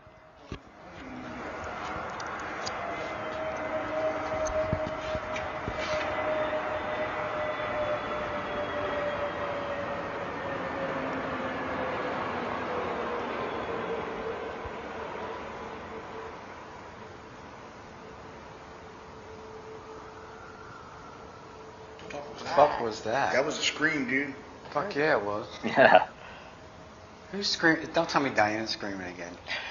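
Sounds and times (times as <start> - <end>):
airplane flying over: 0.0 - 16.9
speech: 22.6 - 26.1, 27.3 - 29.6.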